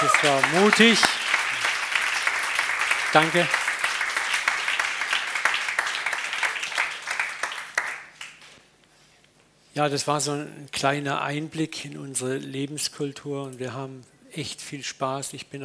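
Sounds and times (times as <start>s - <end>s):
applause: 0.0s - 8.6s
speech: 0.1s - 1.2s, 3.1s - 3.6s, 9.8s - 15.6s.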